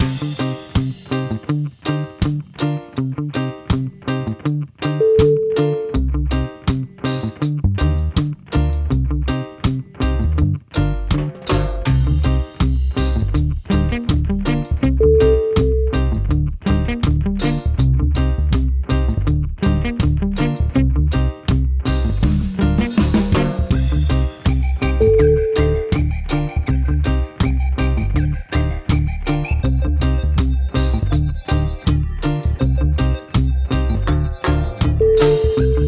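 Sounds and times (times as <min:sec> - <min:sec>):
groovy reggae music: 0:00.0 - 0:35.8.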